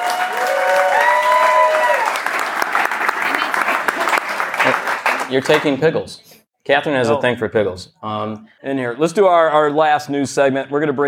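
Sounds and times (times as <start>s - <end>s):
audience round of applause: 0.0s - 5.8s
speech: 5.3s - 11.0s.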